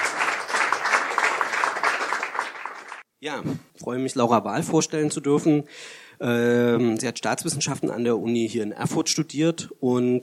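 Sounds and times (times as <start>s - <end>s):
crowd applause: 0.0s - 3.0s
speech: 3.2s - 10.2s.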